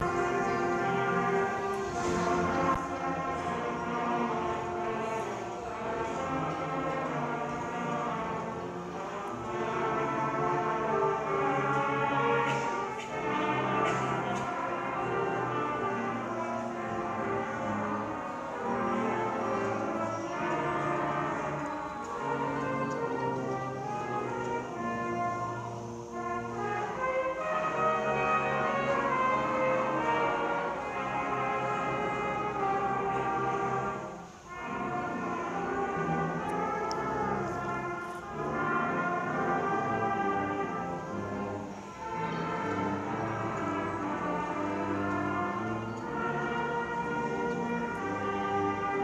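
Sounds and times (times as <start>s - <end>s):
brass band playing: 0.0s - 49.0s.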